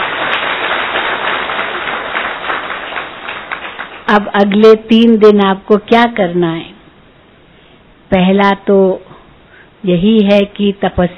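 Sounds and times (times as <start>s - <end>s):
audience clapping: 0.0s - 4.7s
speech: 4.1s - 6.7s, 8.1s - 9.1s, 9.8s - 11.1s.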